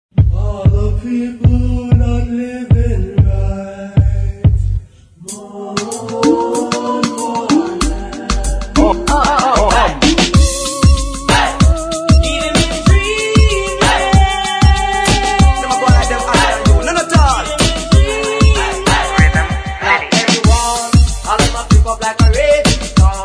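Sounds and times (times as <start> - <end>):
classic reggae riddim mix: 0.1 - 23.2
smooth reggae bassline: 0.2 - 4.9, 6.3 - 23.2.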